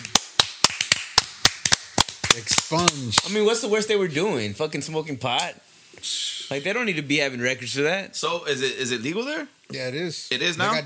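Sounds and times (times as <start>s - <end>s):
hand clap sound effect: 0.0s - 3.4s
speech: 2.3s - 10.8s.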